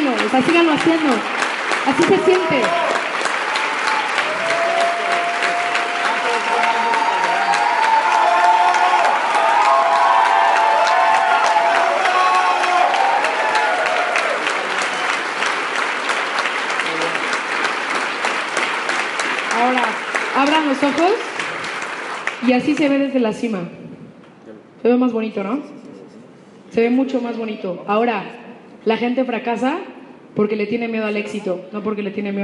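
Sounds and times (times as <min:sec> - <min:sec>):
audience applause: 0:00.0 - 0:22.9
speech: 0:00.4 - 0:02.9, 0:22.4 - 0:23.8, 0:24.9 - 0:25.8, 0:26.7 - 0:32.4.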